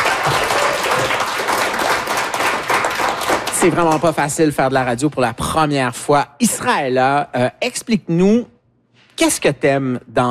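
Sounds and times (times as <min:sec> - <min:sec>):
applause: 0:00.0 - 0:04.4
speech: 0:03.6 - 0:08.6, 0:09.2 - 0:10.3.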